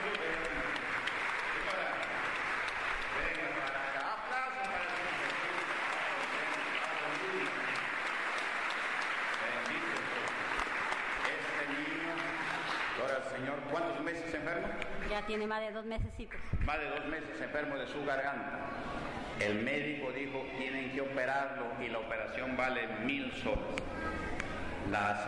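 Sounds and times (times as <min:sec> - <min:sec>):
audience applauding: 0:00.0 - 0:15.0
speech: 0:15.3 - 0:24.0, 0:24.9 - 0:25.2.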